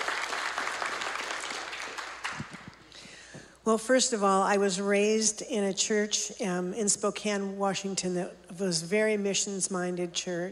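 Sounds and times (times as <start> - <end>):
audience applause welcoming a speaker: 0.0 - 2.8
speech: 3.7 - 10.5.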